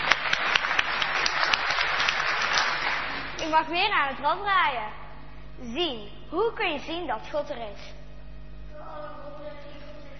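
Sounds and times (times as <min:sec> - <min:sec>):
crowd applauding: 0:00.0 - 0:03.5
speech: 0:03.5 - 0:05.0, 0:05.6 - 0:08.0.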